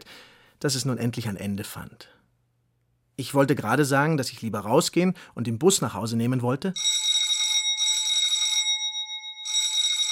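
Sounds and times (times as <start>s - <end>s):
speech: 0.6s - 2.2s, 3.2s - 7.0s
doorbell ringing insistently: 6.8s - 10.1s.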